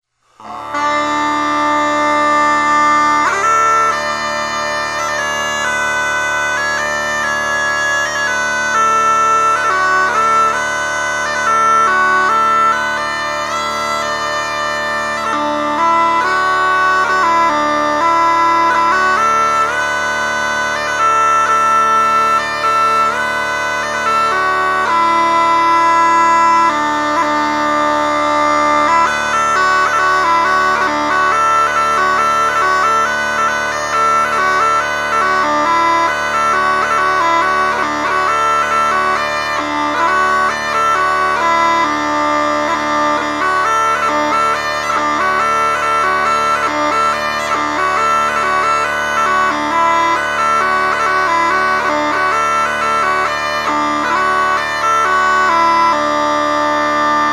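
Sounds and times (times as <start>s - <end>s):
bagpipe in D major playing low D: 0.2s - 57.3s.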